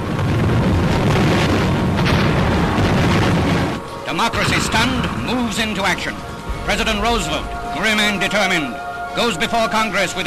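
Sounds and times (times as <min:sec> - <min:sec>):
bombs exploding during a wartime Japanese air attack on America: 0:00.0 - 0:08.2
speech: 0:04.2 - 0:10.2.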